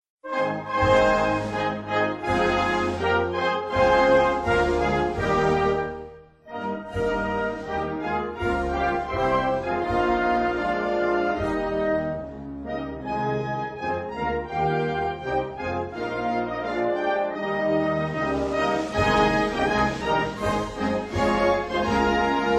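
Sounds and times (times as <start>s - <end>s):
national anthem: 0.2s - 12.3s, 14.1s - 22.5s.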